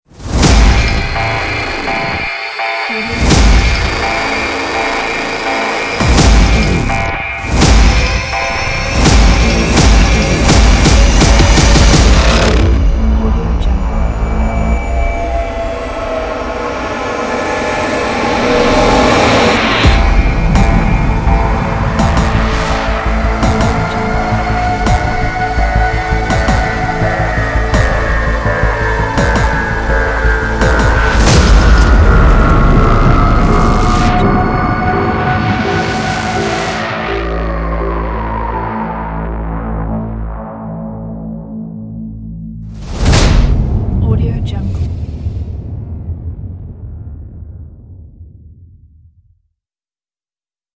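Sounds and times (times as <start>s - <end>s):
trailer music: 0.0s - 49.2s.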